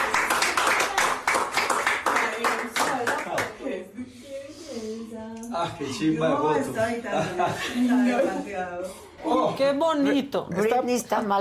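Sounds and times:
applause: 0.0s - 3.6s
speech: 5.6s - 11.3s
laughter: 6.6s - 9.4s.

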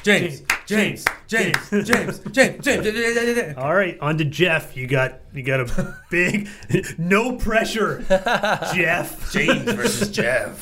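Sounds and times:
applause: 0.0s - 2.0s
speech: 0.0s - 10.6s
laughter: 1.4s - 3.6s, 5.6s - 7.0s, 7.9s - 10.6s.

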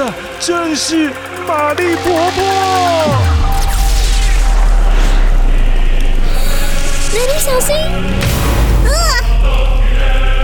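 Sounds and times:
speech: 0.1s - 3.3s, 7.2s - 10.2s
lightning bolt boom: 3.1s - 7.1s.

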